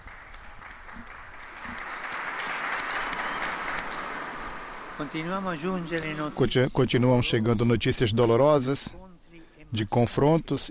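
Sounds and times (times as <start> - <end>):
crowd applause: 0.0 - 6.6
speech: 5.0 - 9.0, 9.7 - 10.6.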